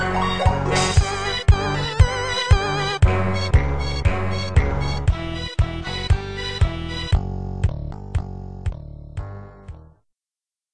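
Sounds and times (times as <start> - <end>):
battle music: 0.0 - 7.3.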